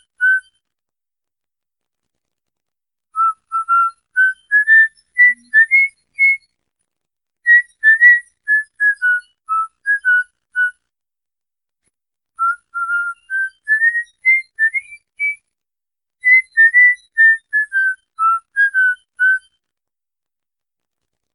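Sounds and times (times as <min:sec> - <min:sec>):
whistling for a cockatiel: 0:00.0 - 0:00.6, 0:03.2 - 0:06.5, 0:07.5 - 0:10.8, 0:12.4 - 0:15.4, 0:16.2 - 0:19.6.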